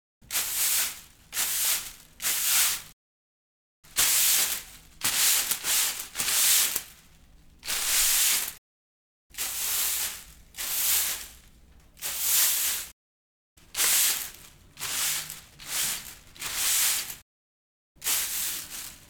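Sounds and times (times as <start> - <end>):
straw broom: 0.3 - 2.9, 3.9 - 7.0, 7.6 - 8.6, 9.4 - 11.4, 12.0 - 12.9, 13.7 - 17.2, 18.0 - 19.0.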